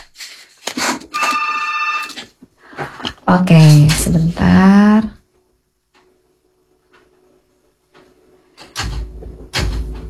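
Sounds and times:
telephone ringing on the call-in line: 1.1s - 2.3s
speech: 3.3s - 5.2s.

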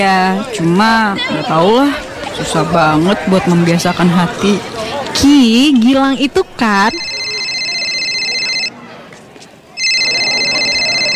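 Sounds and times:
speech: 0.0s - 7.1s
phone ringing: 5.2s - 8.8s, 9.8s - 11.1s.

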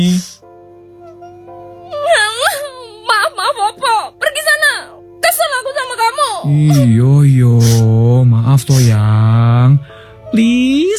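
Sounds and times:
woman crying in a tearful wailing sob: 1.1s - 7.9s
speech: 6.4s - 10.9s.

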